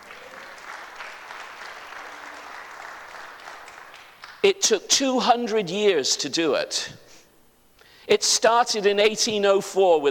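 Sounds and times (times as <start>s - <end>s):
audience applause: 0.0s - 4.4s
speech: 4.4s - 7.0s, 8.1s - 10.0s.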